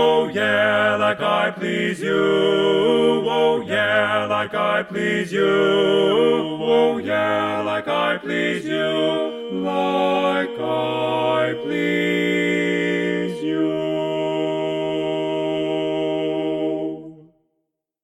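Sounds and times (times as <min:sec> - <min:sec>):
baritone singing: 0:00.0 - 0:17.2.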